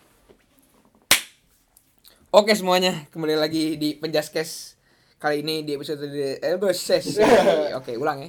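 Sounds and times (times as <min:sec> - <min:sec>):
hand clap: 0:01.1 - 0:01.4
speech: 0:02.3 - 0:08.2
laughter: 0:07.0 - 0:07.8.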